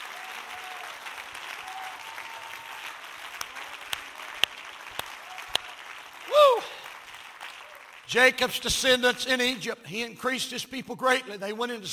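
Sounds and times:
audience hand clapping: 0.0 - 9.2
speech: 8.1 - 11.9.

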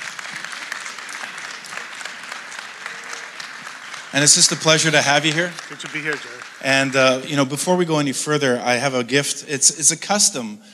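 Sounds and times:
church crowd applauding to welcome two guests onto a stage: 0.0 - 8.8
speech: 4.1 - 10.7.

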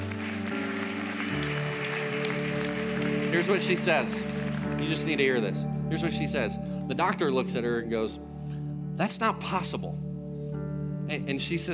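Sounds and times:
audience clapping: 0.0 - 6.2
sustained keyboard chords: 0.0 - 11.7
speech: 3.3 - 8.4, 9.0 - 10.1, 11.1 - 11.7.

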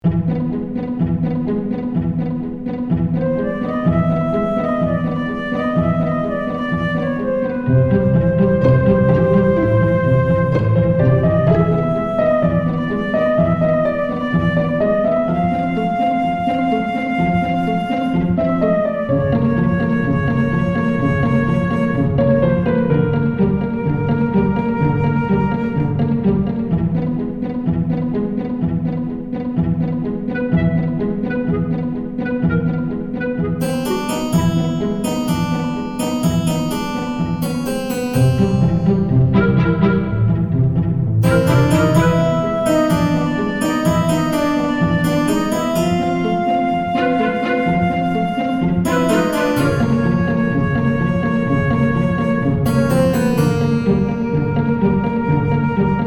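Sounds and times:
quirky orchestral music: 0.1 - 56.0.

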